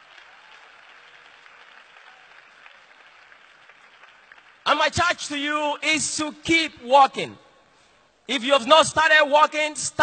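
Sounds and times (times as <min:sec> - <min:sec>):
audience clapping: 0:00.0 - 0:05.2
speech: 0:04.8 - 0:07.4, 0:08.3 - 0:10.0.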